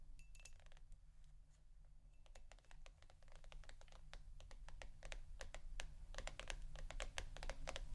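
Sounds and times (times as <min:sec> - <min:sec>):
crisp tapping: 0:02.2 - 0:07.9.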